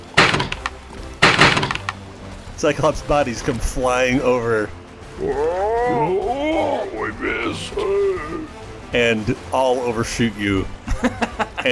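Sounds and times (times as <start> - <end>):
catapults launching with a slapping thunk: 0.0 - 2.0
rattling clatter: 0.0 - 2.0
speech: 2.6 - 6.4, 7.1 - 11.7
laughter: 10.8 - 11.7.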